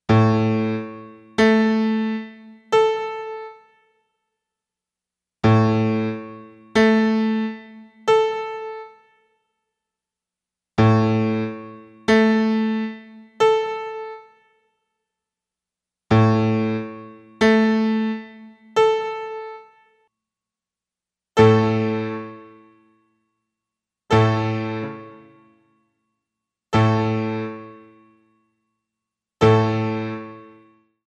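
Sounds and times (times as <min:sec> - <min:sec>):
piano: 0:00.1 - 0:03.9, 0:05.4 - 0:09.3, 0:10.8 - 0:14.6, 0:16.1 - 0:20.0, 0:21.4 - 0:23.1, 0:24.1 - 0:25.7, 0:26.7 - 0:28.4, 0:29.4 - 0:30.9.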